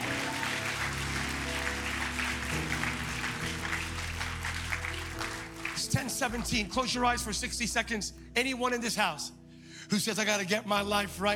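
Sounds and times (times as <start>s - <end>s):
audience applause: 0.0s - 6.6s
speech: 5.9s - 11.3s.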